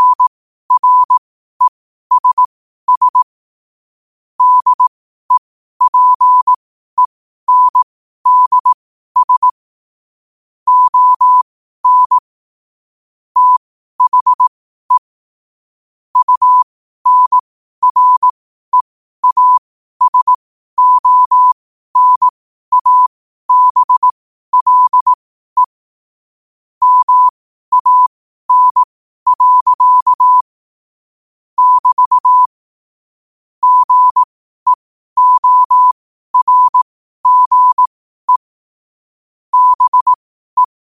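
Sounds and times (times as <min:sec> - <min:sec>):
morse code at 5 wpm: 0:00.0 - 0:03.2, 0:04.4 - 0:06.6, 0:07.5 - 0:09.6, 0:10.7 - 0:12.2, 0:13.4 - 0:15.1, 0:16.2 - 0:25.8, 0:26.8 - 0:30.5, 0:31.6 - 0:32.6, 0:33.6 - 0:38.5, 0:39.5 - 0:40.8.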